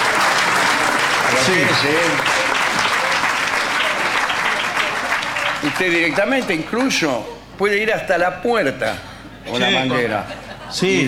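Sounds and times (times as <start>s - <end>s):
audience applause: 0.0s - 7.0s
speech: 1.4s - 2.5s, 5.6s - 11.0s
laughter: 9.8s - 11.0s.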